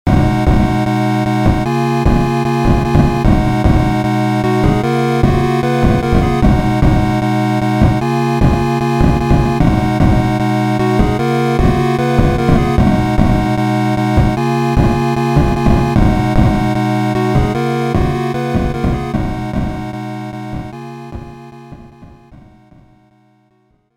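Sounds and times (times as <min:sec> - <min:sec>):
BeepBox chiptune music: 0:00.0 - 0:23.2.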